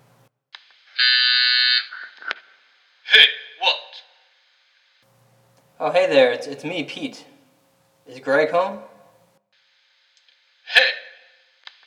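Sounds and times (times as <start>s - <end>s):
apartment door buzzer: 1.0s - 2.2s
speech: 5.8s - 7.3s, 8.1s - 8.9s.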